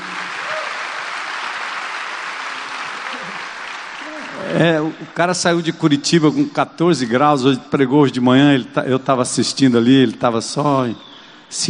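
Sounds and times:
audience applause: 0.0 - 5.2
speech: 4.5 - 11.6.

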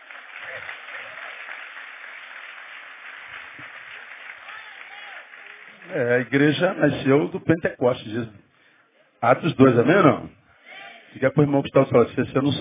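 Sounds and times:
audience applause: 0.0 - 6.8
speech: 5.9 - 8.4, 9.2 - 10.4, 11.1 - 12.5.

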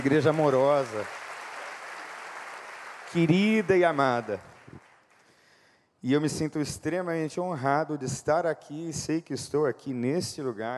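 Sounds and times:
speech: 0.0 - 1.2, 3.1 - 4.5, 6.0 - 10.7
audience applause: 0.0 - 5.1.

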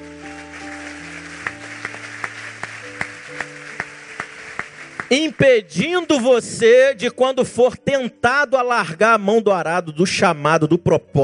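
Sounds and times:
audience applause: 0.0 - 6.2
sustained keyboard chords: 0.0 - 8.2
speech: 5.1 - 11.2.

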